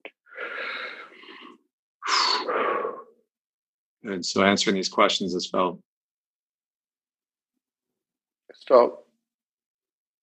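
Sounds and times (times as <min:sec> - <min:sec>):
deep breaths during an emotional question session: 0:00.2 - 0:03.3
speech: 0:04.0 - 0:05.9, 0:08.7 - 0:09.0.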